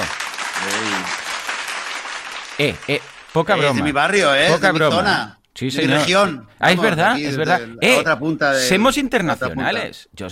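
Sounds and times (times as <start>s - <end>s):
audience applauding: 0.0s - 4.1s
speech: 2.6s - 10.3s.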